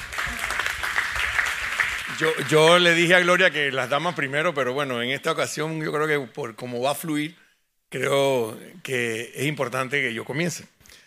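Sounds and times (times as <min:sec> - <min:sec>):
audience applause: 0:00.0 - 0:03.3
speech: 0:02.2 - 0:10.7.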